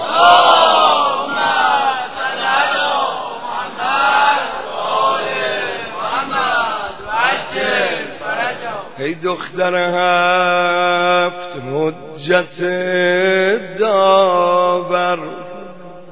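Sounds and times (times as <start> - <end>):
large crowd chanting salawat in unison at a religious gathering: 0.0 - 11.4
speech: 9.1 - 10.9, 12.2 - 15.4.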